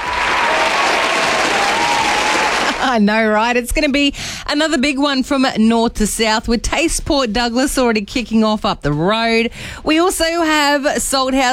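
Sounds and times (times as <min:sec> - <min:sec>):
crowd applause: 0:00.0 - 0:02.9
speech: 0:02.9 - 0:11.5.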